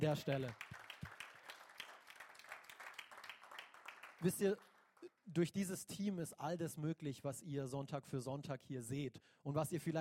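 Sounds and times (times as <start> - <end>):
speech: 0.0 - 0.7, 4.2 - 4.7, 5.3 - 9.9
audience applauding: 0.0 - 5.0.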